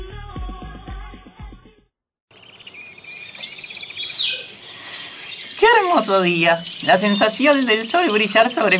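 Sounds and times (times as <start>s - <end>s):
birds chirping: 2.3s - 8.7s
speech: 6.1s - 8.7s.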